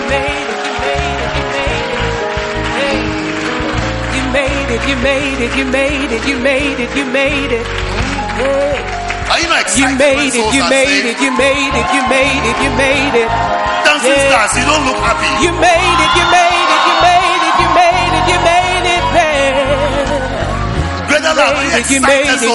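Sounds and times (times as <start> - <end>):
crowd cheering and whooping: 0.0 - 4.6, 10.4 - 22.4
crowd clapping: 0.0 - 22.5
speech: 4.8 - 17.2, 21.3 - 22.5.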